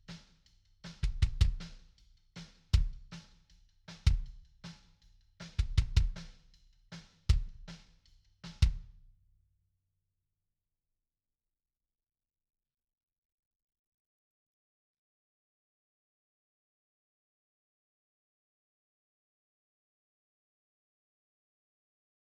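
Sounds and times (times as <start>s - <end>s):
kick drum: 1.0s - 1.7s, 2.8s - 3.1s, 4.1s - 4.4s, 5.6s - 6.3s, 7.3s - 7.8s, 8.5s - 8.9s.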